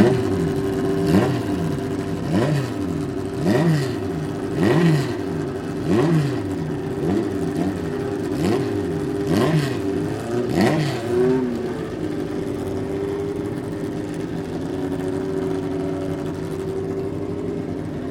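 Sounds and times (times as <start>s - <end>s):
hot race cars warming up at open racetrack in Oerlikon: 0.0s - 18.0s.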